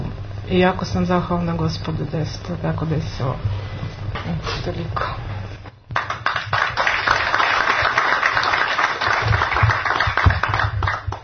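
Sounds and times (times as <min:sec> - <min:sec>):
speech: 0:00.5 - 0:05.3
audience clapping at a book presentation: 0:05.9 - 0:11.2.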